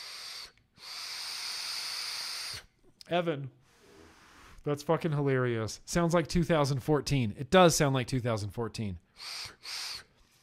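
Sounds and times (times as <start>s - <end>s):
airflow hiss of a draw through a vape atomizer: 0.0s - 2.7s, 9.2s - 10.1s
speech: 3.1s - 3.6s, 4.6s - 9.8s.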